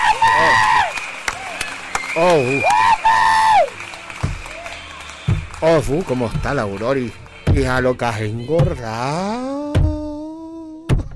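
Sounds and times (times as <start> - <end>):
audience applause: 0.0 - 8.6
speech: 2.2 - 2.9, 5.6 - 9.6.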